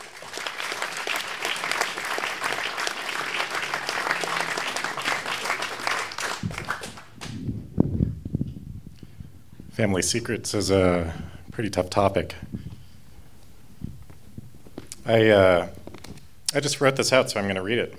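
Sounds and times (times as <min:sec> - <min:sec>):
audience applause welcoming a first-time storyteller at a family-secrets story night: 0:00.0 - 0:07.4
speech: 0:09.8 - 0:12.4, 0:15.1 - 0:15.8, 0:16.5 - 0:17.9.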